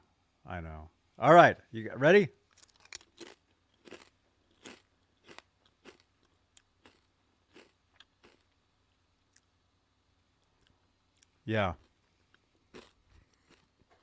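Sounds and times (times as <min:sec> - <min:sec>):
speech: 0:00.5 - 0:02.4, 0:11.5 - 0:11.8
crunching and chewing of pizza-flavored chips: 0:02.5 - 0:08.6, 0:12.6 - 0:13.8.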